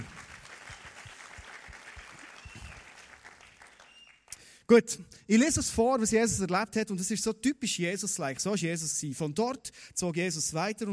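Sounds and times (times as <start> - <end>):
audience applause: 0.0 - 4.3
speech: 4.7 - 10.9.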